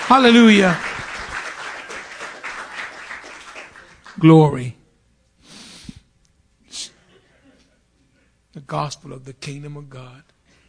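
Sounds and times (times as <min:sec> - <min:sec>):
audience hand clapping: 0:00.0 - 0:04.7
speech: 0:00.1 - 0:00.9, 0:04.2 - 0:04.8, 0:08.6 - 0:10.3.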